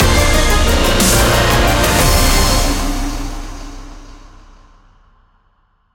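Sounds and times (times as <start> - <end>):
big win jingle: 0.0 - 3.6.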